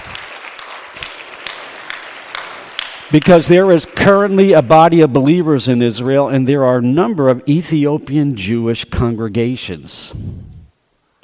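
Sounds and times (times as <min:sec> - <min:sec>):
sharp individual claps: 0:00.0 - 0:04.2
church congregation applauding: 0:00.0 - 0:06.2
speech: 0:03.1 - 0:10.4.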